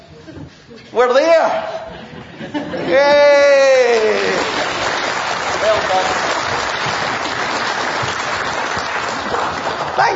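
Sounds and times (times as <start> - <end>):
speech: 0.9 - 1.7, 2.8 - 4.1, 10.0 - 10.1
laughter: 1.9 - 3.4
round of applause: 3.2 - 10.1.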